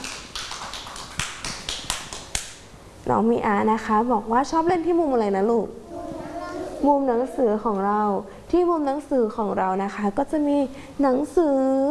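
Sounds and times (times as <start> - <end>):
hand clapping: 0.0 - 2.6
speech: 3.1 - 5.8, 6.8 - 11.8.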